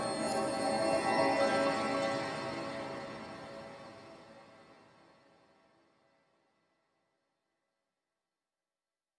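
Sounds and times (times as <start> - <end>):
music: 0.0 - 6.5.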